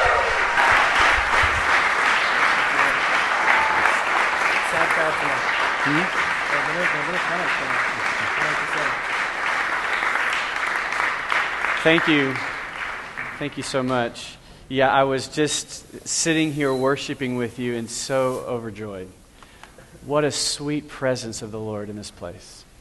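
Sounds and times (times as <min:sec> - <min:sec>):
people whooping and cheering: 0:00.0 - 0:06.1
church congregation standing ovation applause: 0:00.0 - 0:14.0
speech: 0:05.1 - 0:09.1, 0:11.8 - 0:12.5, 0:13.4 - 0:19.2, 0:20.0 - 0:22.6.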